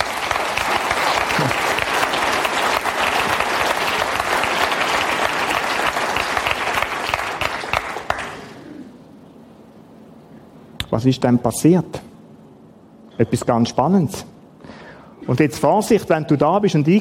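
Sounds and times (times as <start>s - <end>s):
audience applause: 0.0s - 8.7s
speech: 11.0s - 12.0s, 13.2s - 14.3s, 15.2s - 16.9s.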